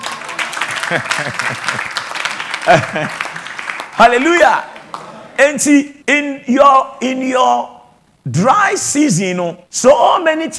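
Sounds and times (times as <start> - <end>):
laughter: 0.0 - 3.7
audience clapping: 0.0 - 5.4
speech: 0.9 - 2.0, 2.6 - 3.4, 4.0 - 4.7, 5.4 - 10.5.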